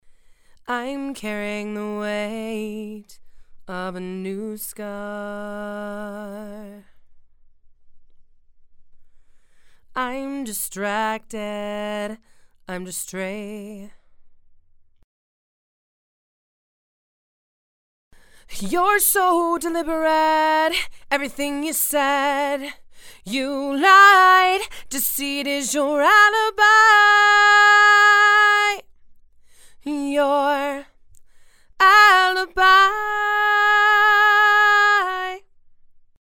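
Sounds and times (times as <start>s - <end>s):
female vocals: 0.6s - 6.9s, 9.9s - 14.0s, 18.4s - 28.9s, 29.8s - 31.0s, 31.7s - 35.5s.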